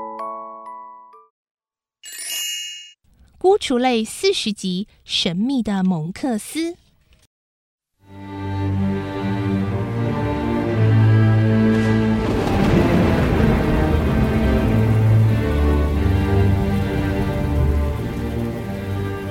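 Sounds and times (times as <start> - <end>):
speech: 3.6 - 6.8
low musical drone: 8.4 - 19.3
deep rumbling thunderclap: 11.6 - 19.3
steady rain pattering: 11.7 - 19.3.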